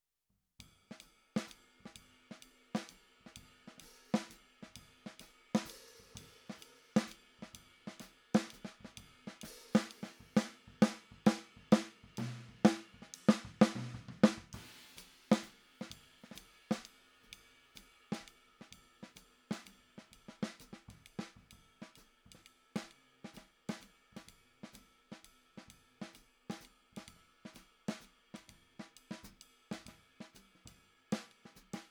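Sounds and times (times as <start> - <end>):
snare drum: 1.0 - 17.0, 17.7 - 31.8.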